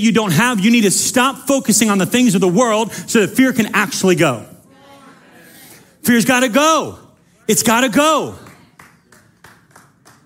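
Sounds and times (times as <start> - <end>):
speech: 0.0 - 4.5, 6.0 - 8.5
few people clapping awkwardly: 8.2 - 10.2.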